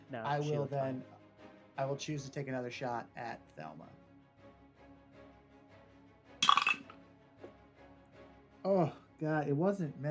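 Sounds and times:
speech: 0.1 - 1.2, 1.8 - 4.0, 8.6 - 10.0
dice clattering across a hard surface: 6.4 - 6.9.

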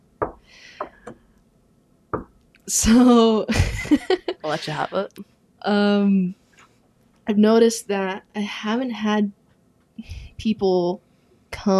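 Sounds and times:
knocking on a wooden surface: 0.2 - 1.2, 2.1 - 2.4
speech: 2.7 - 6.4, 7.3 - 9.4, 10.0 - 11.7
laughter: 3.5 - 4.9.

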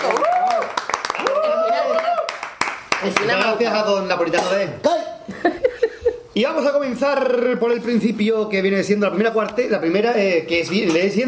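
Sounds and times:
audience applause: 0.0 - 3.5
speech: 3.0 - 5.0, 6.4 - 11.2
laughter: 5.2 - 6.4.

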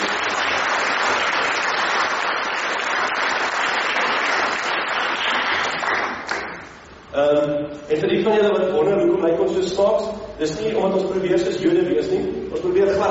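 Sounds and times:
audience clapping: 0.0 - 6.8
speech: 7.2 - 13.0.

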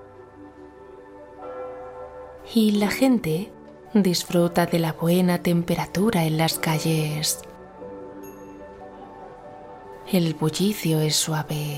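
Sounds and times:
church bells ringing in a Mediterranean town: 1.4 - 5.9
speech: 2.5 - 7.5, 10.1 - 11.7.

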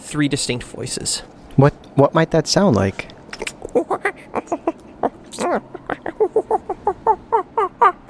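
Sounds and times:
speech: 0.1 - 3.1, 5.4 - 5.8
person's voice imitating monkey chatter: 3.3 - 8.0.

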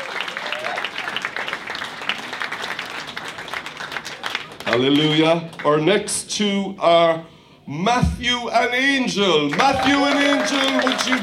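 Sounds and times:
audience applause: 0.0 - 5.2, 9.5 - 11.2
speech: 4.7 - 11.2.

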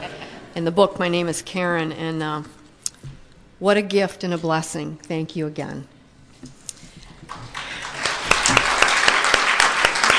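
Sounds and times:
speech: 0.6 - 5.9
audience applause: 7.3 - 10.1.

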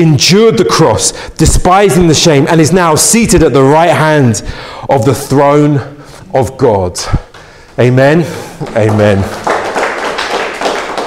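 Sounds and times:
speech: 0.0 - 9.5
Pentecostal rhythmic clapping: 7.2 - 8.0, 8.6 - 11.0.

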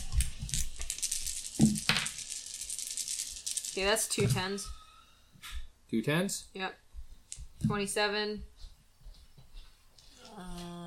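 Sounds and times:
dice rolling: 0.0 - 4.5
speech: 3.8 - 4.8, 5.9 - 6.8, 7.6 - 8.5.

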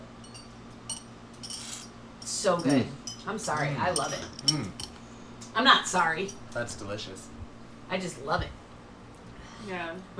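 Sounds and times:
drinking glasses clinking in a toast: 0.2 - 5.1
speech: 2.4 - 4.8, 5.6 - 8.6, 9.6 - 10.1.

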